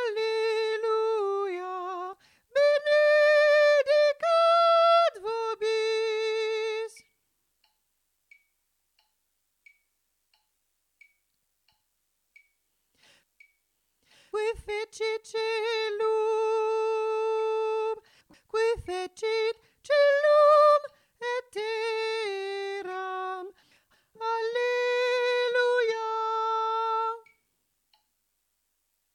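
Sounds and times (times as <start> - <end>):
tenor singing: 0.0 - 7.1, 14.3 - 23.6, 24.2 - 27.4.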